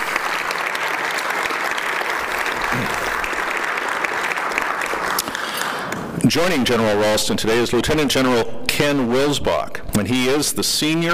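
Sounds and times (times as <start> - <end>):
audience applause: 0.0 - 6.1
speech: 6.2 - 11.1.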